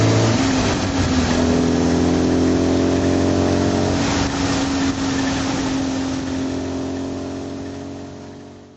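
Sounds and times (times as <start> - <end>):
race car driving: 0.0 - 8.7.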